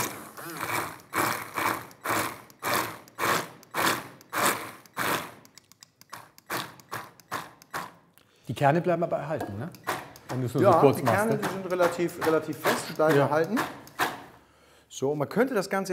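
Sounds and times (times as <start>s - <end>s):
kitchen blender briefly blending jam: 0.0s - 5.5s, 6.2s - 8.0s
speech: 8.5s - 13.8s, 15.0s - 15.9s.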